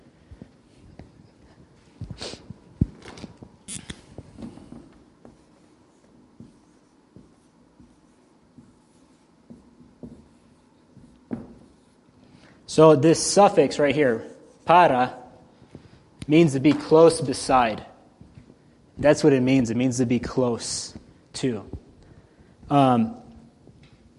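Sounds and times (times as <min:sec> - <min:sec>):
handwriting scratches across paper: 0:05.2 - 0:12.2
speech: 0:12.8 - 0:15.2, 0:16.3 - 0:17.9, 0:19.0 - 0:21.8, 0:22.7 - 0:23.2.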